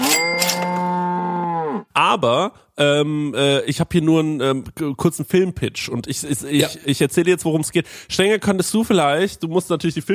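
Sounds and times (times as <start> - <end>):
cow mooing sound effect: 0.4 - 1.9
speech: 2.0 - 10.1.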